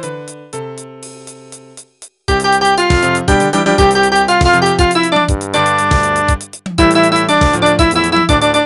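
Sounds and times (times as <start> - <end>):
recorder playing a baiao: 2.3 - 8.6.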